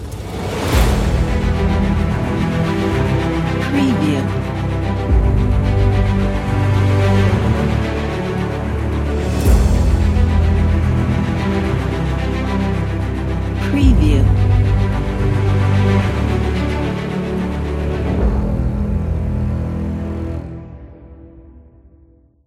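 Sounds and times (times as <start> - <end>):
epic dramatic music: 0.0 - 22.1.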